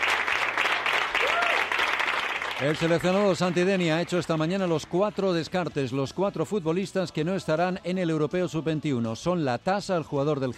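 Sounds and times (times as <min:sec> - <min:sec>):
crowd applauding: 0:00.0 - 0:05.6
speech: 0:02.6 - 0:10.5.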